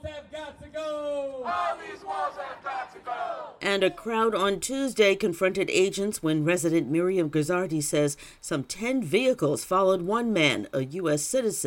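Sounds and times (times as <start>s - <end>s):
protesters shouting at immigration agents: 0.7s - 3.6s
speech: 1.5s - 11.6s.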